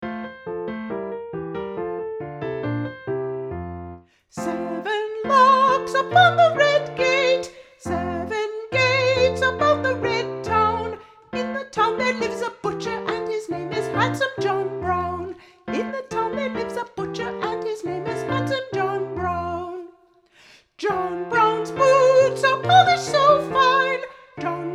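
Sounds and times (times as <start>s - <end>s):
soprano singing: 4.3s - 20.0s, 20.8s - 24.7s.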